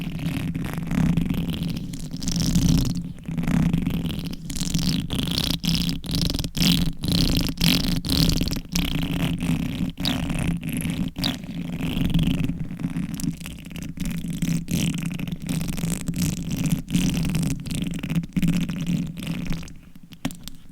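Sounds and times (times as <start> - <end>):
long nails scratching microphone: 0.0 - 20.7.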